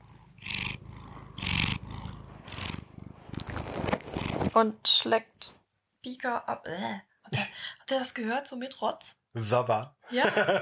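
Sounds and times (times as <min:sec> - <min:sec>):
cat purring: 0:00.0 - 0:04.6
speech: 0:04.6 - 0:07.1, 0:07.9 - 0:10.6
laughter: 0:10.1 - 0:10.6.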